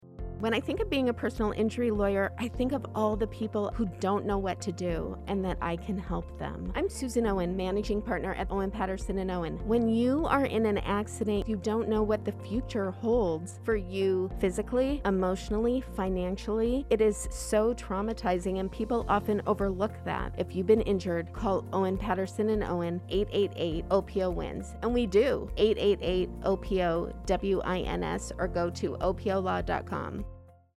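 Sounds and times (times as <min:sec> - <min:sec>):
unsettling background music: 0:00.0 - 0:30.7.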